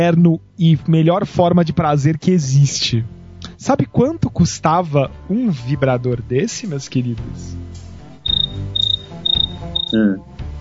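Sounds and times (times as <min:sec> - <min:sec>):
speech: 0:00.0 - 0:07.8, 0:09.9 - 0:10.3
cricket chirping sound effect: 0:08.2 - 0:10.0.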